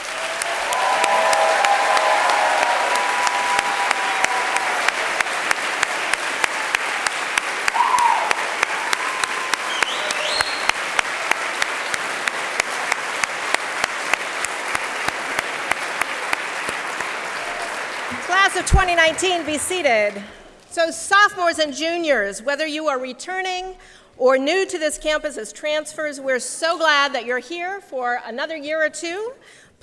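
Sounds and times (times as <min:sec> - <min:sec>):
crowd applauding and cheering: 0:00.0 - 0:20.5
speech: 0:18.6 - 0:29.6.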